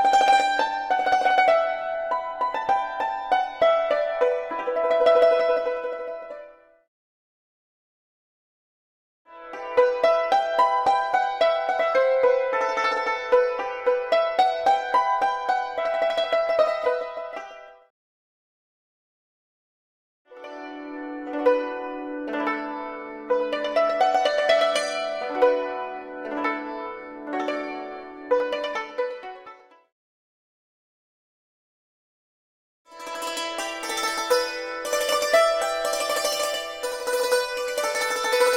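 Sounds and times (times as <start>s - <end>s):
Asian yangqin hammered dulcimer: 0.0s - 6.5s, 9.3s - 17.8s, 20.4s - 29.8s, 32.9s - 38.5s.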